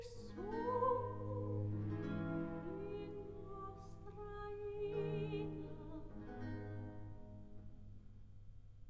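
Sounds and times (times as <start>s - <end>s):
recitative singing: 0.0s - 6.8s.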